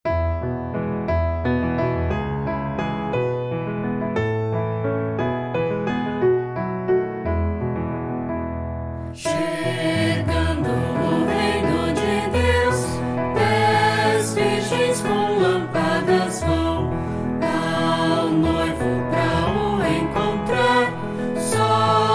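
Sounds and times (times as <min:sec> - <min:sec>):
piano: 0:00.0 - 0:22.1
person singing: 0:09.2 - 0:22.1.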